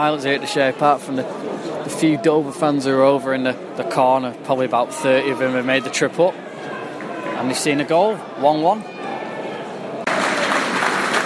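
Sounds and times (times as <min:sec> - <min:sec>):
speech: 0:00.0 - 0:06.5, 0:07.4 - 0:08.9
low crowd murmur: 0:00.0 - 0:07.5, 0:08.1 - 0:11.2
stadium crowd applause: 0:10.0 - 0:11.2.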